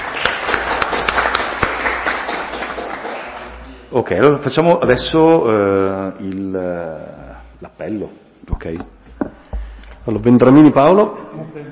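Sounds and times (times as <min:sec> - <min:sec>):
applause from a town council meeting: 0:00.0 - 0:03.6
speech: 0:03.9 - 0:09.0, 0:10.0 - 0:11.7.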